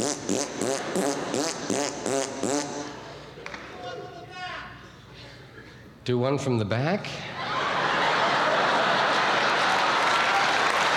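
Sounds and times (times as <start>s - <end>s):
raspberry, bilabial fricative: 0.0s - 3.0s
speech: 6.1s - 7.3s
laughter: 7.2s - 10.5s.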